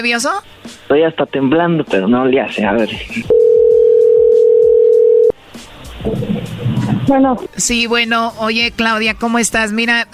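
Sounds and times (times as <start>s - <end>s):
speech: 0.0s - 3.5s, 7.1s - 10.1s
telephone ringback tone of outgoing call: 3.3s - 5.4s.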